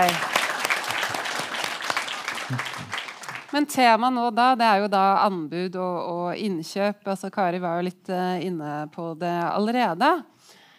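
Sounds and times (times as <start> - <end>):
audience applause: 0.0 - 3.6
speech: 3.6 - 10.4.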